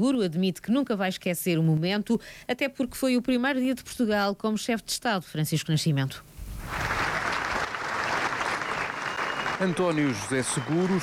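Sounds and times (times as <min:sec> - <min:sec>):
speech: 0:00.0 - 0:07.0, 0:09.6 - 0:11.0
applause from hundreds of people in the Alfândega courtyard at a Portugal Day flag-lowering ceremony: 0:06.6 - 0:11.0.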